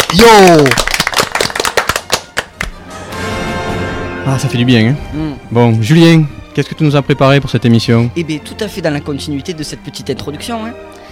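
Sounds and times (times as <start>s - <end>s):
group clapping for themselves: 0.0s - 2.8s
speech: 0.1s - 0.9s, 4.2s - 10.9s.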